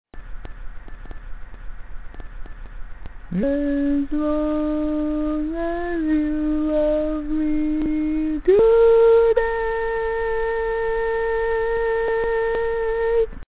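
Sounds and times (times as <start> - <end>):
barbershop tenor singing: 3.3 - 13.4.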